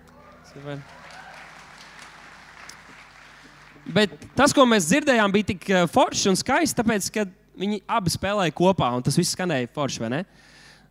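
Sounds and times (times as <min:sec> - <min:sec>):
person cheering: 0:00.0 - 0:02.0
audience applause: 0:00.0 - 0:05.1
speech: 0:00.5 - 0:01.1, 0:03.8 - 0:10.6.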